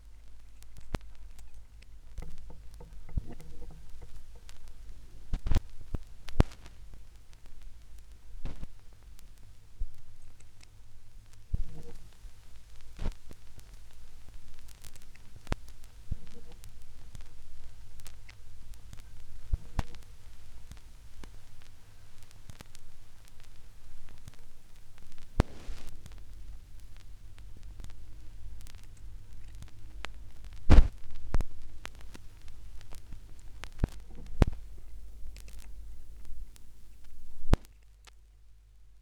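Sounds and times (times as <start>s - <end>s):
reversed vinyl record crackle mix: 0.0s - 38.9s.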